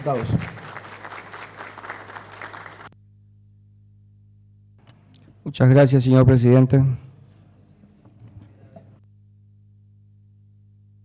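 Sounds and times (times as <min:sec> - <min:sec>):
speech: 0:00.0 - 0:00.5, 0:05.5 - 0:07.0
applause from deputies: 0:00.0 - 0:03.0.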